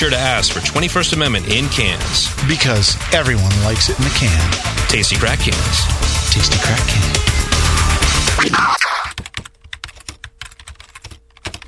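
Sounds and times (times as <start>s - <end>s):
speech: 0.0s - 7.4s, 8.4s - 8.9s
computer keyboard typing an online review: 8.8s - 11.6s.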